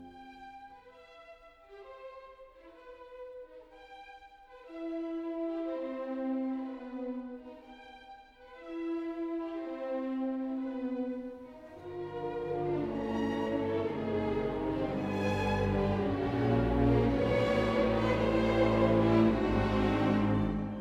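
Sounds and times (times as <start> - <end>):
classical fourth movement: 0.0 - 20.7.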